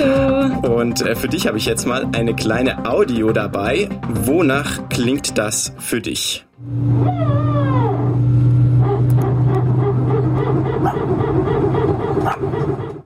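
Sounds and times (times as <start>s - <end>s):
speech: 0.8s - 7.5s
airplane noise sounding like a dog: 6.6s - 13.0s
dog responding: 8.8s - 11.1s, 12.0s - 12.7s.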